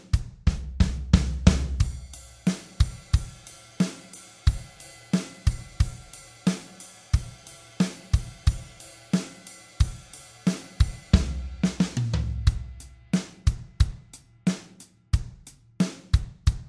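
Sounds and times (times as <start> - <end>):
rhythm beat: 0.2 - 16.6.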